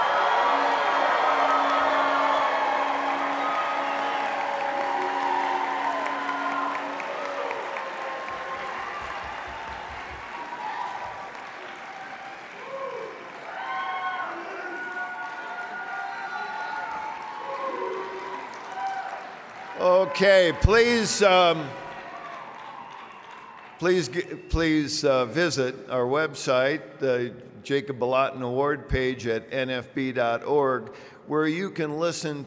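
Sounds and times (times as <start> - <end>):
large crowd cheering and applauding: 0.0 - 24.7
speech: 20.0 - 21.8, 23.8 - 32.4.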